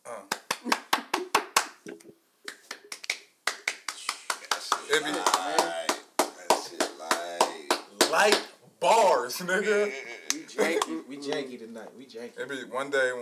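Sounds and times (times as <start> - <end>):
sparse hand clapping: 0.3 - 8.6
speech: 4.9 - 5.8, 8.1 - 13.1.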